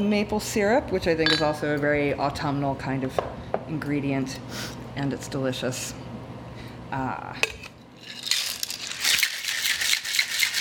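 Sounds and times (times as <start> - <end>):
speech: 0.0 - 6.0, 6.9 - 7.5
cocktail shaker rattling with ice: 8.0 - 10.5.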